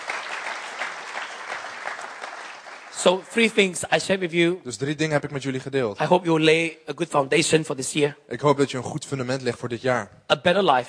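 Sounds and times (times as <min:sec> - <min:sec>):
audience applause: 0:00.0 - 0:03.7
speech: 0:03.0 - 0:10.8.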